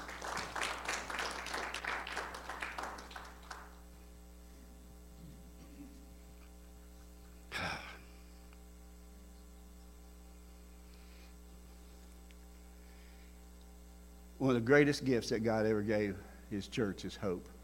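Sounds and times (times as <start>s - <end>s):
crowd clapping hands: 0.0s - 3.8s
low hum: 0.0s - 17.6s
speech: 14.4s - 17.6s.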